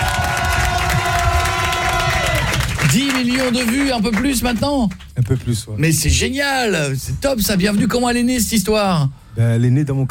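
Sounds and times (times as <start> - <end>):
crowd cheering and clapping: 0.0 - 5.4
speech: 2.9 - 10.0.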